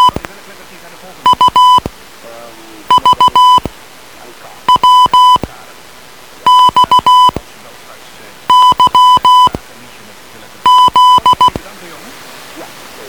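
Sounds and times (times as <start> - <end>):
morse code beeps: 0.0 - 0.3, 1.2 - 1.9, 2.9 - 3.7, 4.6 - 5.5, 6.4 - 7.4, 8.5 - 9.6, 10.6 - 11.6.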